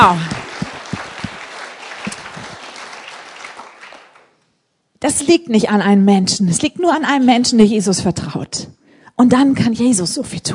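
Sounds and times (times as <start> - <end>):
speech: 0.0 - 0.3, 5.0 - 10.5
crowd clapping: 0.0 - 4.4.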